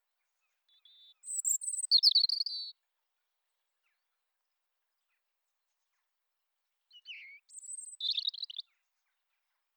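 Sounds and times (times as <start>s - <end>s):
European robin Erithacus rubecula singing: 0.7s - 2.8s, 6.9s - 8.6s.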